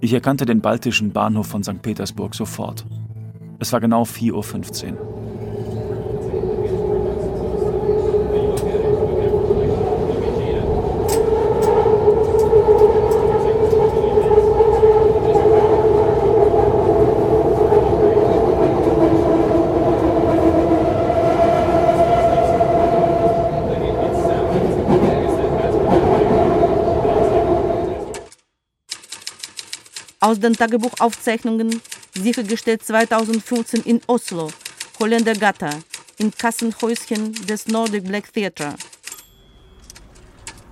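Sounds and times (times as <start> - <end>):
speech: 0.0 - 3.0, 3.6 - 5.3, 30.3 - 38.9
train racing closely past: 4.4 - 28.3.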